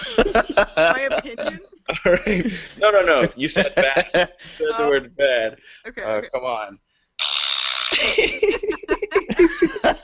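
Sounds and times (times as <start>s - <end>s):
laughter: 0.0s - 5.0s, 7.9s - 10.0s
speech: 0.3s - 10.0s
fart noise sound effect: 7.2s - 8.2s.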